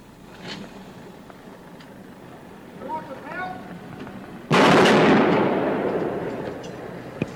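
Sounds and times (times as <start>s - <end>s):
rifle shot with long rumbling echo: 4.5s - 7.3s.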